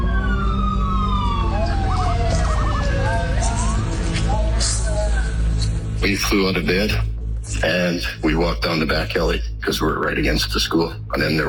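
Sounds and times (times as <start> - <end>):
sirens: 0.0 - 5.8
speech: 6.0 - 11.4.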